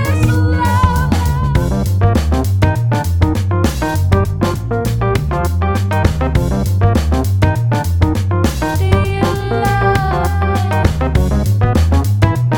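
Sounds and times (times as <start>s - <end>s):
beat: 0.0s - 12.5s.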